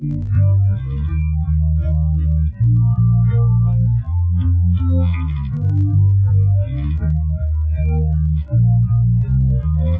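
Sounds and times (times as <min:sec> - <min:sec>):
instrumental music without drums: 0:00.0 - 0:09.9.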